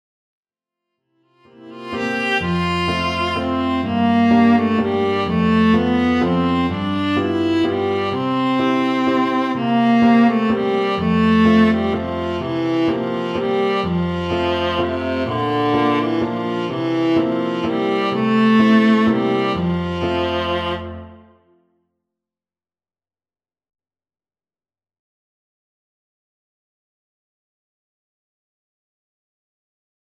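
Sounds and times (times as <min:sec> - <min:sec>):
waltz music: 0:01.5 - 0:21.4.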